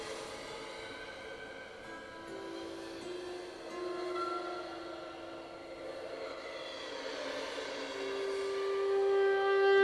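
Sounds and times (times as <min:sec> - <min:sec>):
bells improvisation: 0:00.0 - 0:09.7.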